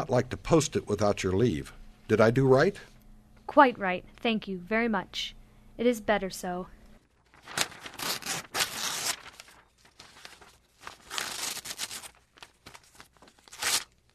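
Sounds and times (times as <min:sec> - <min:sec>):
speech: 0:00.0 - 0:02.9, 0:03.5 - 0:06.8
paper letter being torn to shreds: 0:07.3 - 0:14.1.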